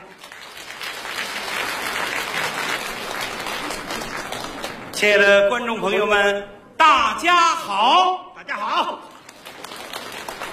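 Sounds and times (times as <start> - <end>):
audience applause: 0.0 - 5.0, 9.2 - 10.5
speech: 5.0 - 8.2.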